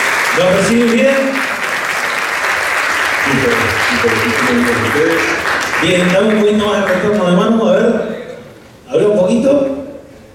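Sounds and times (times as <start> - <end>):
audience applause: 0.0 - 7.5
speech: 0.4 - 1.5, 3.3 - 8.2.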